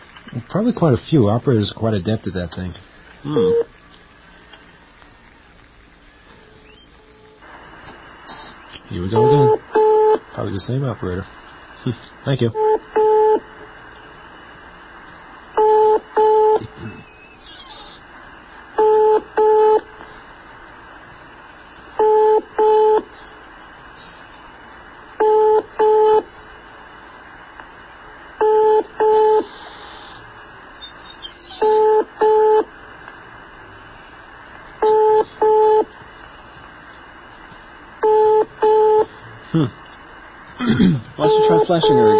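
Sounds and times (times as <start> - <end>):
speech: 0.4 - 3.7, 8.9 - 9.7, 10.4 - 13.0
telephone ringing tones on a line: 12.6 - 13.4, 15.6 - 16.6, 18.8 - 19.8, 22.0 - 23.0, 25.2 - 26.3, 28.4 - 29.4, 31.6 - 32.7, 34.8 - 35.9, 38.0 - 39.1, 41.2 - 42.1.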